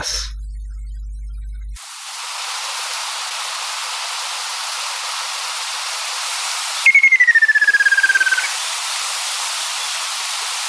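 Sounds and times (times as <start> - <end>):
Ruddy kingfisher giving falling rattling trills: 6.9 - 8.6.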